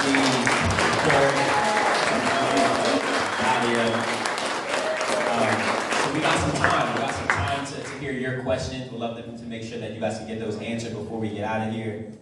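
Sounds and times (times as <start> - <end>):
audience applauding at a talk: 0.0 - 8.2
speech: 8.4 - 12.1.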